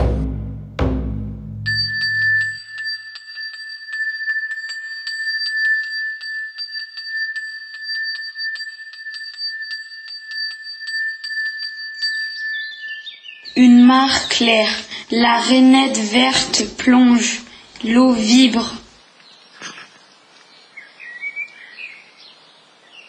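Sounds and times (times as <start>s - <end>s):
shrine bell ringing: 1.6s - 18.6s
speech: 13.6s - 18.8s.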